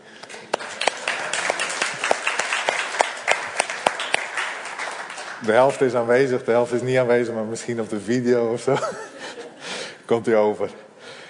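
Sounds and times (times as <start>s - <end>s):
applause: 0.2s - 6.3s
speech: 5.4s - 9.1s, 10.1s - 10.8s
laughter: 8.7s - 9.8s.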